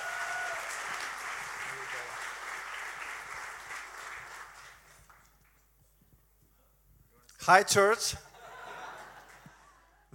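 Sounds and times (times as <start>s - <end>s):
church audience in Bulgaria applauding to welcome a guest: 0.0s - 5.6s
speech: 7.4s - 8.3s
laughter: 8.2s - 10.1s.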